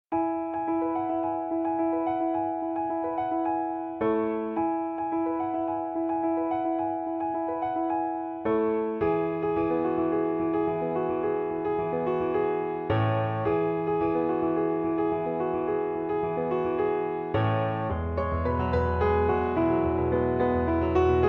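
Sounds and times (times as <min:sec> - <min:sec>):
piano: 0:00.1 - 0:21.2.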